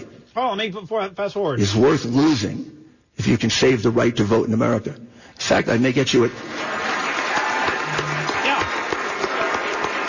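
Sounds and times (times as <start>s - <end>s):
speech: 0.4s - 6.8s
crowd applauding at public hearing: 6.4s - 10.0s.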